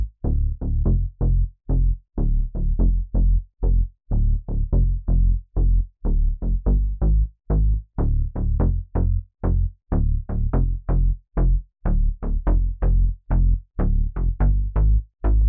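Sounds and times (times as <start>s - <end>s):
plucked bass loop in D at 124 BPM: 0.0s - 15.4s.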